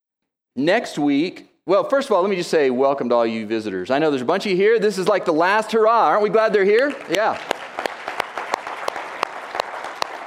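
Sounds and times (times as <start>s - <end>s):
speech: 0.6s - 7.9s
small group clapping: 6.4s - 10.2s.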